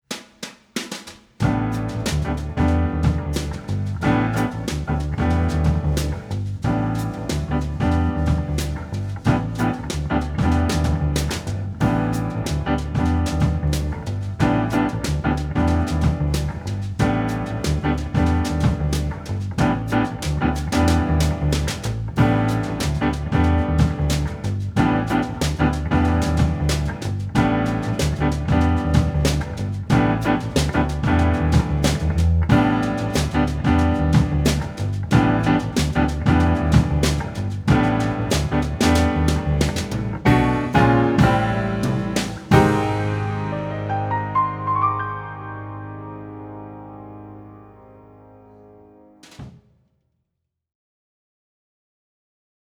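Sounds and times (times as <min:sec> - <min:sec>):
trio arrangement: 0:01.4 - 0:49.4.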